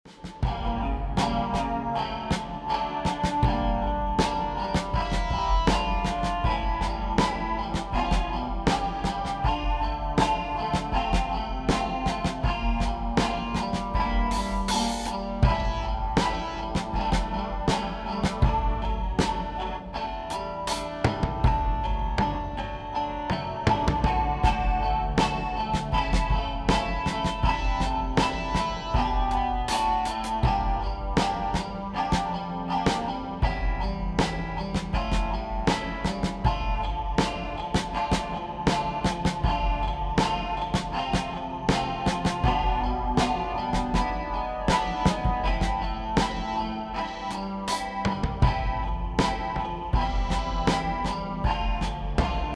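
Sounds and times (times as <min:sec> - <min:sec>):
drum: 0:00.1 - 0:52.5.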